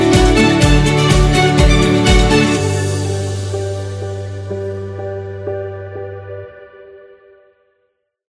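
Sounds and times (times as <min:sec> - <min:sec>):
upbeat acoustic music: 0:00.0 - 0:04.9.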